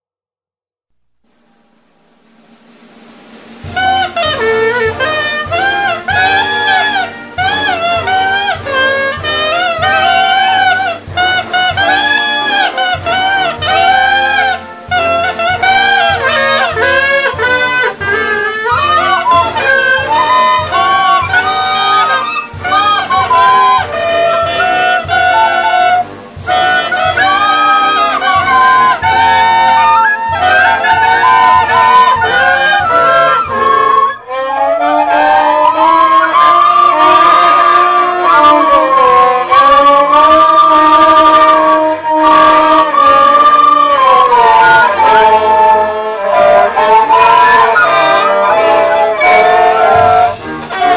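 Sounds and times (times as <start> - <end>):
national anthem played badly on flute: 3.5 - 50.9.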